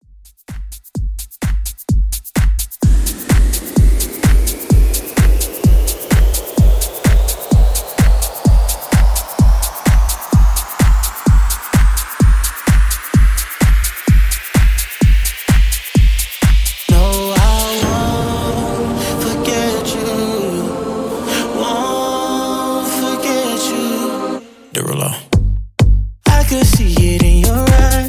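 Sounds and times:
club extended mix dance music: 0.3s - 25.5s, 26.2s - 28.0s.

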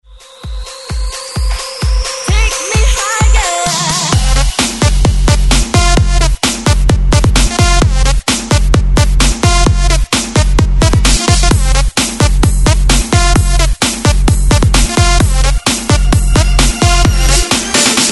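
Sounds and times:
breakbeat mix: 0.0s - 18.1s.

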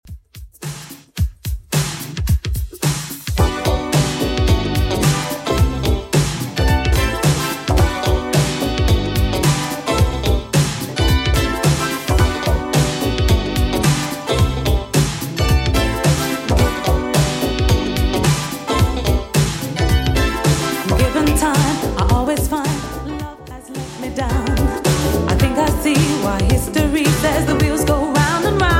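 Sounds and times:
80s drum beat: 0.0s - 22.8s, 24.0s - 27.9s.

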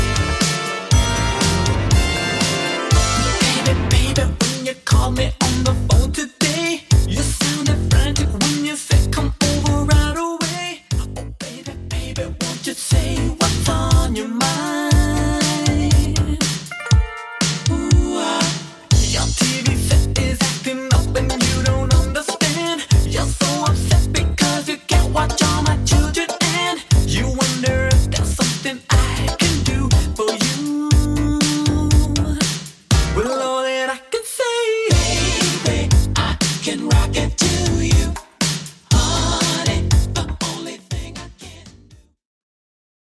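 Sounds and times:
1980s style music at 120 bpm: 0.0s - 33.5s, 34.9s - 41.8s.

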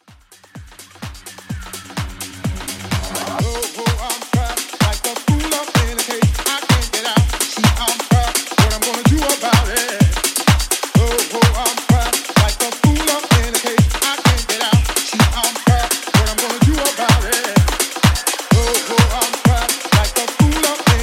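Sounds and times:
80s deep house music at 127 BPM: 0.0s - 21.0s.

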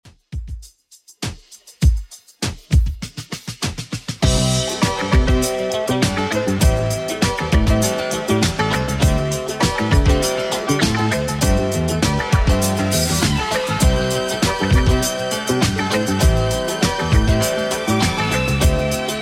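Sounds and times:
70s style music: 4.2s - 19.2s.

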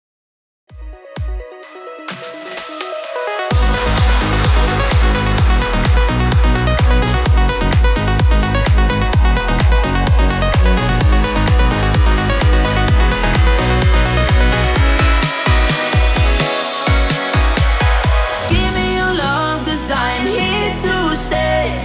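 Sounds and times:
progressive music at 128 BPM: 0.7s - 21.8s.

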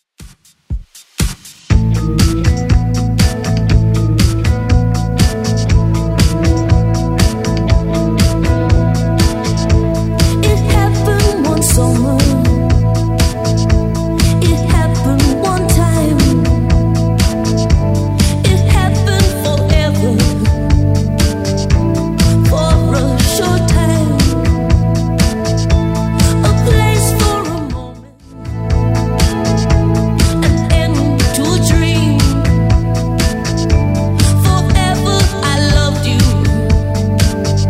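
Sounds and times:
1980s style track at 120 bpm: 0.2s - 37.6s.

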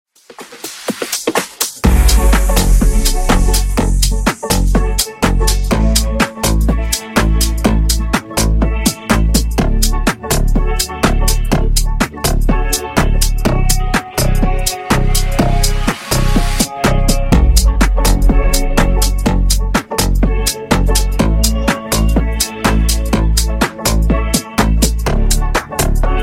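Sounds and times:
funk remix at 124 bpm: 0.2s - 26.2s.

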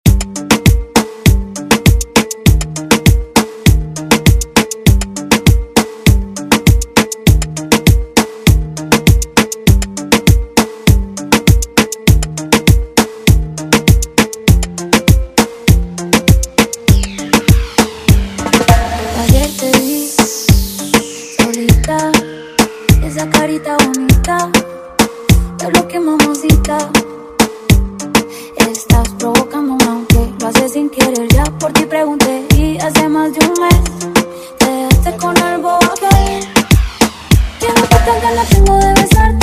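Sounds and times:
reggaeton music: 0.0s - 39.4s.

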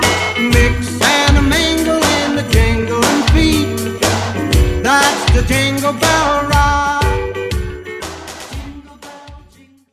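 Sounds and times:
50s Christmas Redrum drum machine beat: 0.0s - 9.6s.

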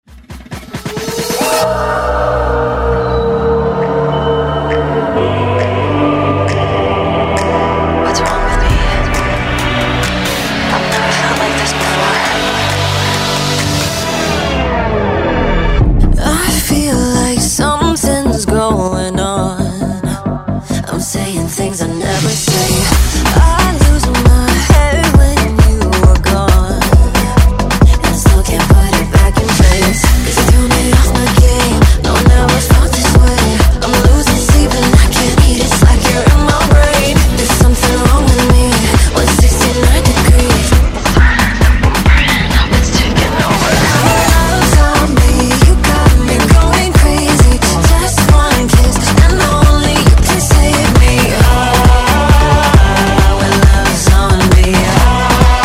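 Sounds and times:
afrobeat music: 0.0s - 55.6s.

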